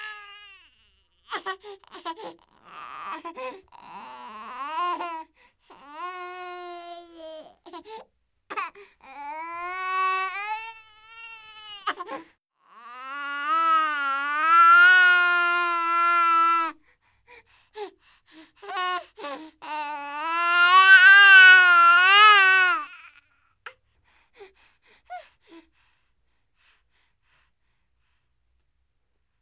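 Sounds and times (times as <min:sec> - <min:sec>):
baby crying lightly: 0:00.0 - 0:05.2, 0:05.8 - 0:16.8, 0:18.6 - 0:23.2.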